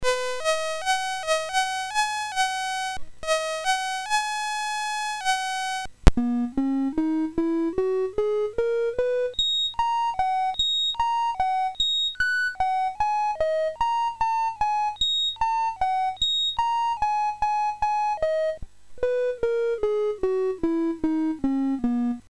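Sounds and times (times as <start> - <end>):
MOS6581R3 sound chip tones: 0.3 - 22.2.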